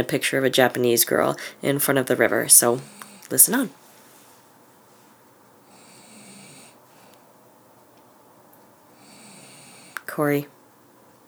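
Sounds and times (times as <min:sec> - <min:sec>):
speech: 0:00.0 - 0:03.8, 0:10.2 - 0:10.6
steady hiss: 0:01.0 - 0:11.2
sleeping person snoring: 0:02.7 - 0:03.7, 0:05.7 - 0:06.8, 0:09.0 - 0:10.1.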